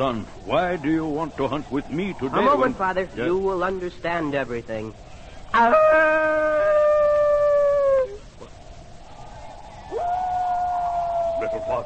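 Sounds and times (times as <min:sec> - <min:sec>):
speech: 0:00.0 - 0:06.7
human voice imitating a wolf's howl: 0:05.6 - 0:08.4, 0:09.9 - 0:11.8.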